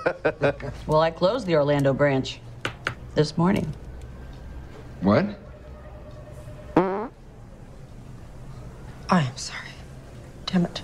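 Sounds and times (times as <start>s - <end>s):
speech: 0.1s - 2.5s, 3.2s - 3.8s, 5.0s - 5.4s, 9.1s - 9.7s, 10.5s - 10.8s
fart: 6.8s - 7.2s.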